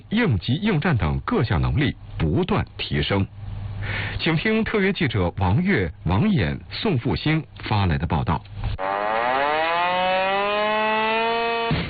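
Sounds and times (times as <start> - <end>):
speech: 0.1 - 8.9, 11.7 - 11.8
military alarm siren wailing: 8.8 - 11.8.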